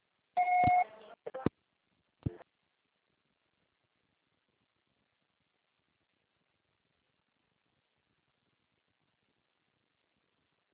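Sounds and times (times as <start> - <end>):
electronic voicemail beep: 0.4 - 0.9.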